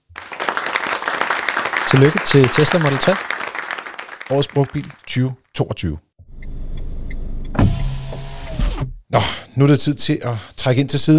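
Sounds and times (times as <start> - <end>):
crowd small round of applause: 0.0 - 5.2
speech: 1.9 - 3.4, 4.3 - 6.0, 9.1 - 11.1.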